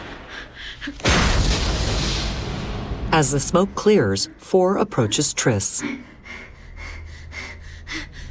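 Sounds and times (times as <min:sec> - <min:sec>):
speech: 0:00.9 - 0:01.2, 0:03.2 - 0:06.2
testing room doors exploding: 0:01.0 - 0:03.2.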